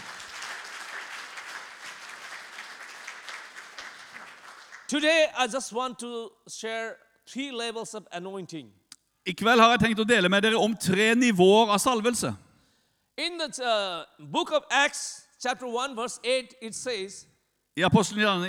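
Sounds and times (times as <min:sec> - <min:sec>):
audience applause: 0:00.0 - 0:04.9
speech: 0:04.9 - 0:12.4, 0:13.2 - 0:18.4.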